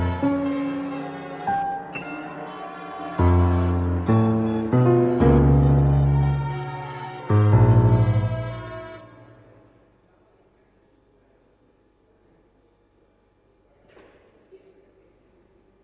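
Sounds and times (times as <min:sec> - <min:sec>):
domestic chamber music: 0:00.0 - 0:09.7.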